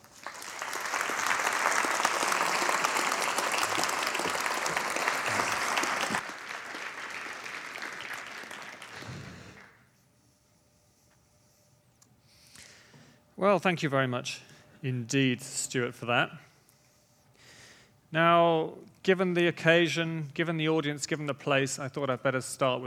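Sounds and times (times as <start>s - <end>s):
audience applause welcoming a speaker from Oxford, England: 0.0s - 9.7s
speech: 13.4s - 16.5s, 18.1s - 22.8s.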